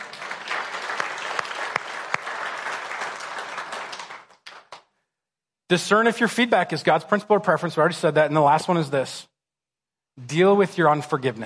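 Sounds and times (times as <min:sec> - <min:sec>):
audience applause: 0:00.0 - 0:04.8
speech: 0:05.7 - 0:09.3, 0:10.2 - 0:11.4.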